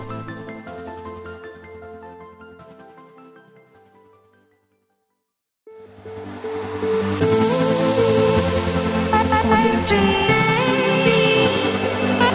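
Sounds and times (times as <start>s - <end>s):
future bass music: 6.5s - 12.3s.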